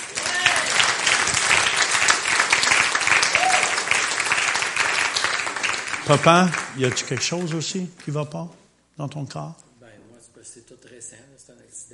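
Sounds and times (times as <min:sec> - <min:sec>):
audience applauding: 0:00.0 - 0:08.3
speech: 0:06.1 - 0:09.6, 0:10.5 - 0:11.9.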